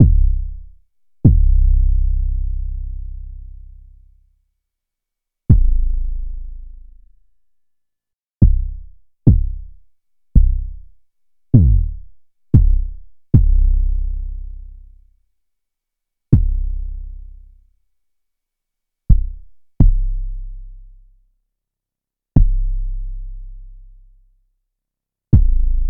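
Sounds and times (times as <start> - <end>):
kick drum: 0.0 - 1.9, 5.5 - 5.9, 8.4 - 14.0, 16.3 - 16.9, 19.1 - 20.2, 22.4 - 22.7, 25.4 - 25.8.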